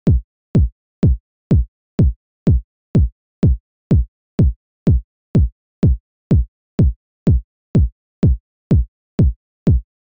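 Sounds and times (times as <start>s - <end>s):
EDM kick drum: 0.0s - 10.1s.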